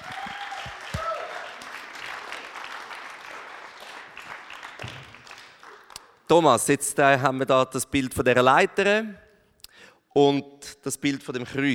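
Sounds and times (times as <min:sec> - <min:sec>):
audience applause: 0:00.0 - 0:06.0
speech: 0:06.3 - 0:09.2, 0:10.1 - 0:11.7.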